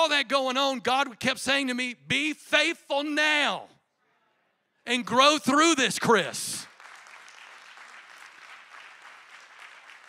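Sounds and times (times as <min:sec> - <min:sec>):
speech: 0:00.1 - 0:03.8, 0:04.8 - 0:06.7
crowd clapping: 0:06.6 - 0:10.0.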